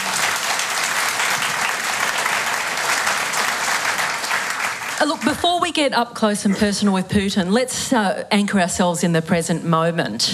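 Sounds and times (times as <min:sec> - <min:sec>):
audience applause welcoming guests at the Sorrento Writers' Festival: 0:00.0 - 0:05.6
speech: 0:05.0 - 0:10.3.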